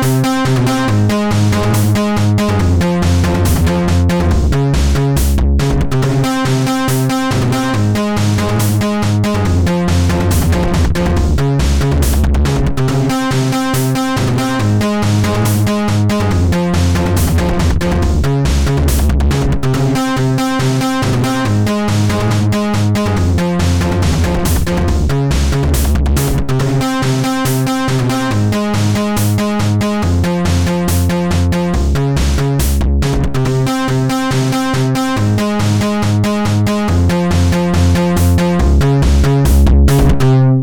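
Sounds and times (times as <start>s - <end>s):
downwards techno: 0.0s - 40.6s.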